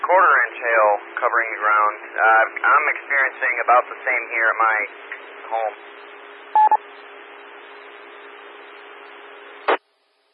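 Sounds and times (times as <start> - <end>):
steady radio-like hiss and static: 0.0 - 9.9
speech: 0.1 - 6.0
telephone touch-tone dialing beeps: 6.6 - 6.8.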